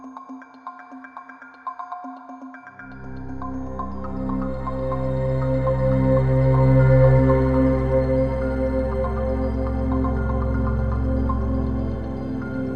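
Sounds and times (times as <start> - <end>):
ambient soundscape: 2.8 - 12.7.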